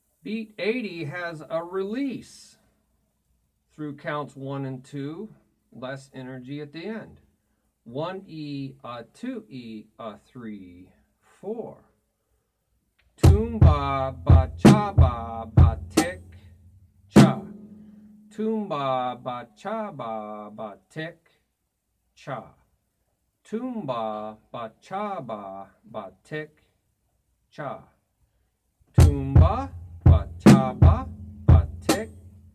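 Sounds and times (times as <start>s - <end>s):
drum beat: 13.2s - 17.8s, 29.0s - 32.5s.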